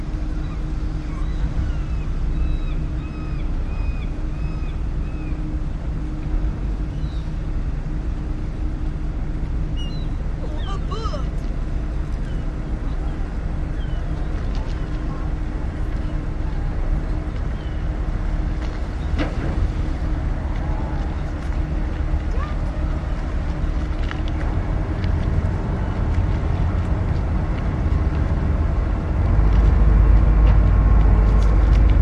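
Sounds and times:
boats and seabus at a market dock: 0.0s - 32.0s
planes: 0.0s - 32.0s
water at a market dock: 0.0s - 32.0s
seagulls at a market dock: 0.4s - 5.4s.

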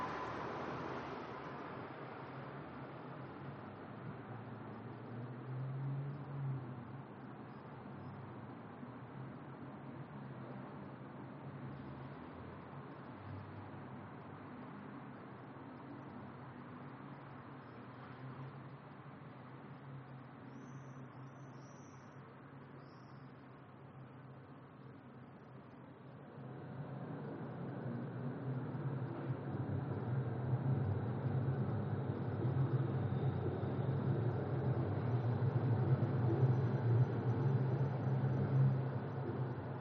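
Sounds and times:
tram heard from a balcony: 0.0s - 5.0s, 26.1s - 39.8s
evening traffic heard from a balcony: 0.0s - 21.2s, 24.9s - 39.8s.

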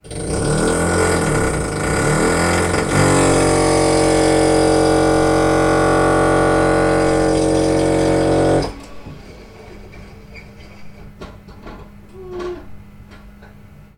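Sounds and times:
electric drill drilling into a house wall: 0.0s - 9.2s.

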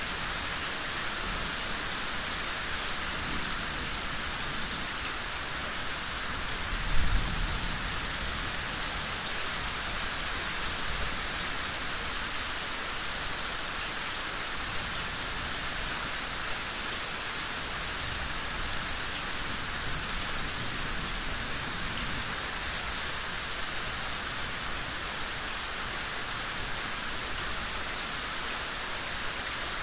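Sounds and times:
rain drips in a yard: 0.0s - 29.8s
approaching thunderstorm: 6.7s - 8.7s.

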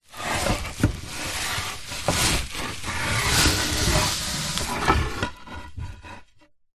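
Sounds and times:
wood slats sliding in a plastic bag: 0.0s - 5.4s.

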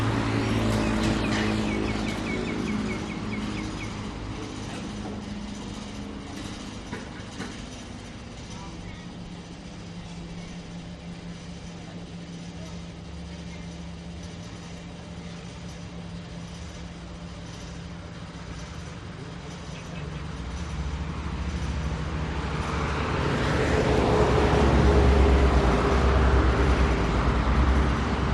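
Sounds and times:
cars passing at gas station: 0.0s - 7.6s, 21.1s - 28.3s
trucks passing at gas station: 0.0s - 28.3s.

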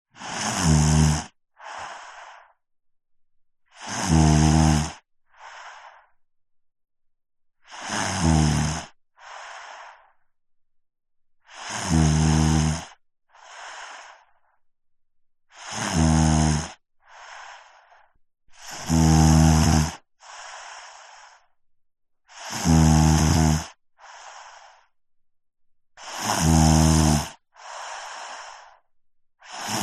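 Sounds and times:
five-year-old boy snoring: 0.2s - 2.5s, 3.7s - 6.1s, 7.6s - 10.2s, 11.4s - 14.4s, 15.5s - 21.5s, 22.3s - 24.9s, 26.0s - 29.8s.

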